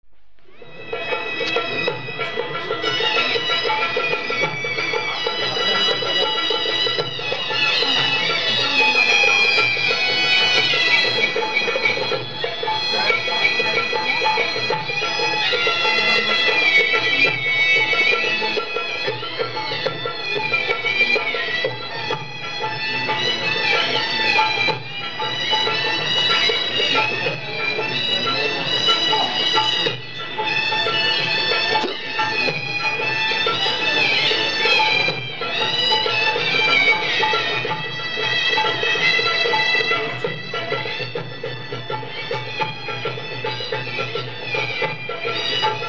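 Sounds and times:
music from Varanasi, India: 0.4 - 45.8.

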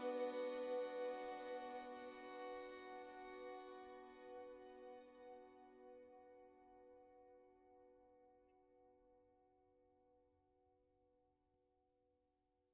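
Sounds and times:
violin: 0.0 - 6.9.

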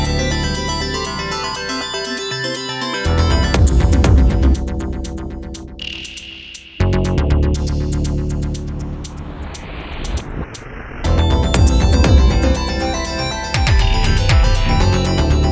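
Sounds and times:
quirky pretty synth arpeggios: 0.0 - 8.9, 11.0 - 15.4
hard kick drums: 3.5 - 8.7, 11.1 - 13.0, 13.6 - 15.4.

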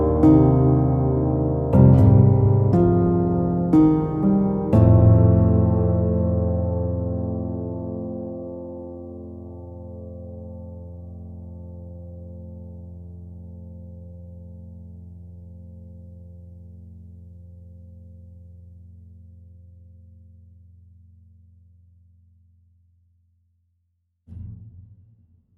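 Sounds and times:
slow gentle solo piano: 0.0 - 16.9.

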